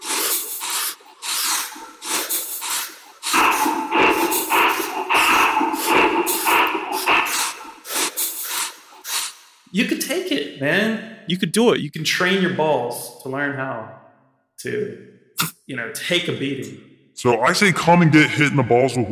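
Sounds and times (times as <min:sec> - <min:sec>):
forceful Qigong breathing in hissing, rasping bursts: 0:00.0 - 0:09.7
speech: 0:09.8 - 0:14.0, 0:14.6 - 0:19.1.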